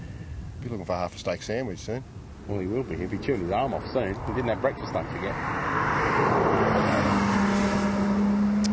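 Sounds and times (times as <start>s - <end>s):
speech: 0.7s - 6.9s
sports car driving past: 2.8s - 8.7s.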